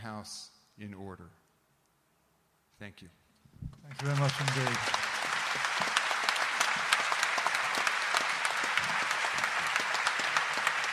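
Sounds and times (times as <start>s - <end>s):
speech: 0.1s - 1.4s, 2.8s - 5.0s
audience applause: 3.9s - 10.9s.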